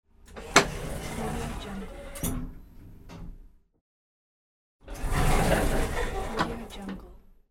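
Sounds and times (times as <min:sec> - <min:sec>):
elevator door opening and closing: 0:00.3 - 0:03.4, 0:04.9 - 0:07.1.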